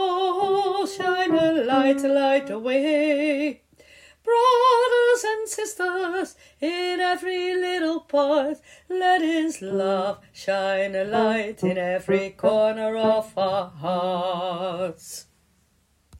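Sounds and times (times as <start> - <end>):
third voice part singing: 0.0 - 3.6, 4.2 - 15.3.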